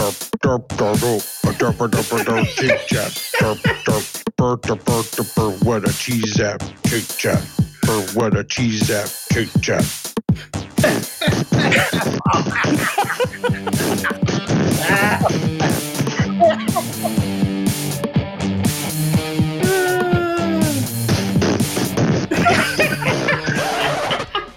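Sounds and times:
speech: 0.1 - 15.4
loud busy music: 0.8 - 4.3, 4.9 - 24.5
laughter: 1.5 - 4.0, 10.8 - 17.4, 22.2 - 24.5
sputtering fart noises made with the mouth: 10.6 - 12.8, 13.6 - 16.3, 21.0 - 22.4.

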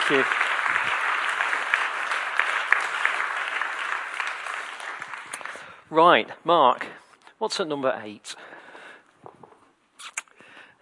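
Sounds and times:
audience applause: 0.0 - 5.9
speech: 0.1 - 0.5, 5.9 - 8.5.

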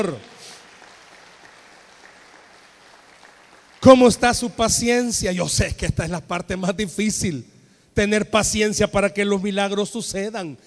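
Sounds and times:
speech: 0.0 - 0.3, 3.8 - 10.6
audience applause: 0.0 - 4.2.

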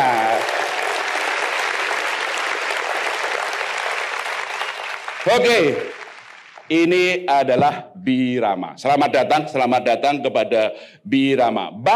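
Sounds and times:
audience applause: 0.0 - 6.7
speech: 5.2 - 5.9, 6.7 - 11.9.

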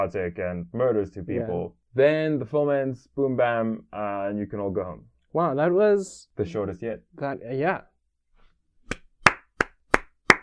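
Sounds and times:
speech: 0.0 - 7.9
applause sound effect: 9.3 - 10.4.

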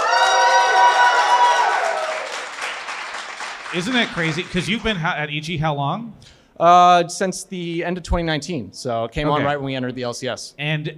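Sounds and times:
crowd cheering and whooping: 0.0 - 2.6
speech: 3.7 - 10.9.

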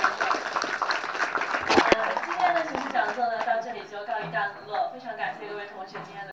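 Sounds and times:
applause: 0.0 - 3.6
speech: 4.3 - 6.3.

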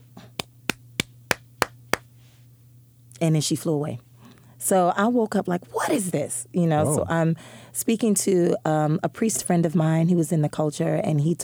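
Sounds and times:
low steady hum: 0.0 - 11.4
hand claps: 0.2 - 2.1
speech: 3.2 - 4.1, 4.7 - 11.4.

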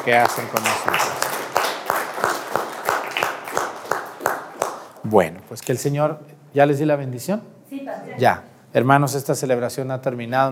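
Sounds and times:
speech: 0.0 - 1.3, 5.1 - 10.4
applause: 0.0 - 5.0.

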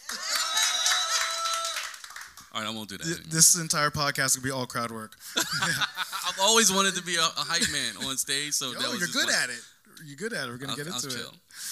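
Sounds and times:
applause: 0.0 - 2.6
speech: 2.6 - 11.6
laughter: 5.2 - 9.6.

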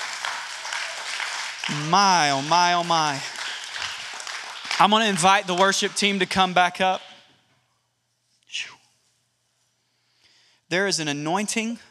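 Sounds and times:
large crowd clapping hands in praise: 0.0 - 7.2
speech: 1.7 - 3.3, 4.8 - 7.0, 8.5 - 8.8, 10.7 - 11.9.

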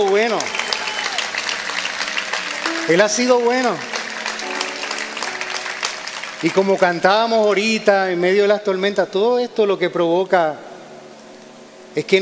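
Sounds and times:
audience applauding: 0.0 - 8.0
speech: 2.9 - 3.9, 6.4 - 10.7, 12.0 - 12.2.

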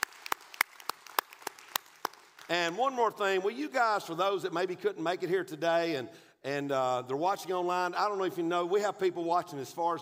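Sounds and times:
audience applause and clapping: 0.0 - 2.5
speech: 2.5 - 10.0.

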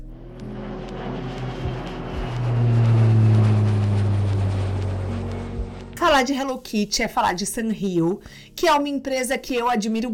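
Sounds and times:
small private jet taking off with engine roar and whine: 0.0 - 6.0
speech: 6.2 - 10.1.

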